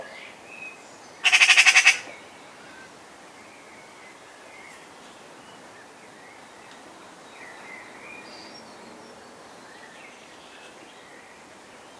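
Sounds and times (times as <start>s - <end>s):
Eurasian magpie Pica pica chattering rattles: 1.2s - 2.0s.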